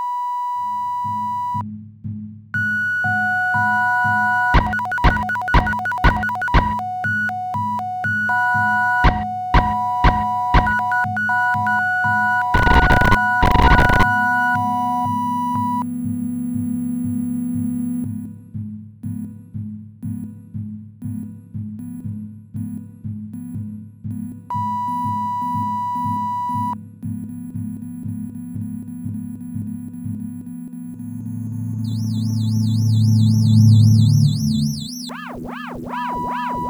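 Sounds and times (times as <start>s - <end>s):
sine wave tone: 0.0s - 1.6s, 2.6s - 18.2s, 24.5s - 26.8s, 27.6s - 36.6s.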